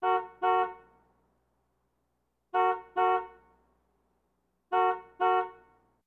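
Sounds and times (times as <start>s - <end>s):
small American car horn: 0.0s - 1.0s, 2.5s - 3.6s, 4.7s - 5.9s.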